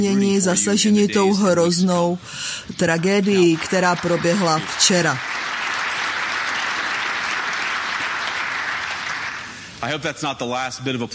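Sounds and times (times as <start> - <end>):
speech: 0.0 - 5.5, 9.8 - 11.1
audience applause: 3.0 - 9.7.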